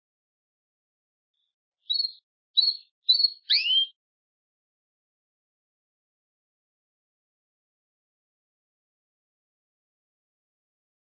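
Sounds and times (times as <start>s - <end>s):
Belgian canary chirps and falling whistle: 1.9s - 4.0s.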